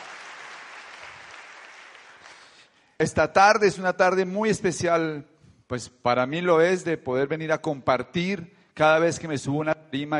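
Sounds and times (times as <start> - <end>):
crowd applause: 0.0 - 2.6
speech: 3.0 - 10.1.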